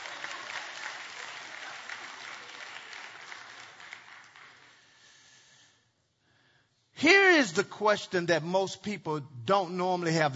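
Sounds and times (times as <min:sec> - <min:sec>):
audience applause, hand clapping: 0:00.0 - 0:05.3
speech: 0:07.0 - 0:10.3.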